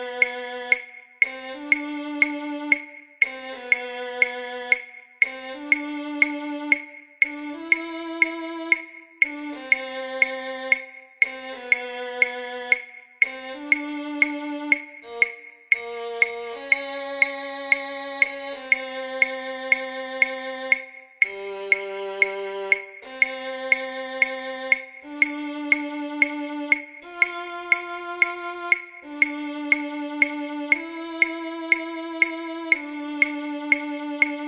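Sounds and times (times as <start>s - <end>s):
violin: 0.0s - 34.4s.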